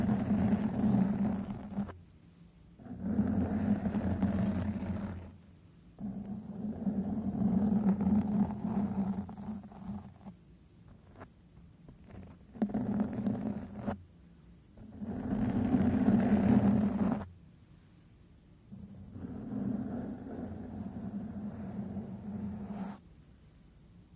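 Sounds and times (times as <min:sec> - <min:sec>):
microphone brushed, scratched and stroked: 0:00.0 - 0:02.0, 0:02.8 - 0:05.4, 0:06.0 - 0:11.3, 0:11.9 - 0:14.0, 0:14.8 - 0:17.3, 0:18.7 - 0:23.0.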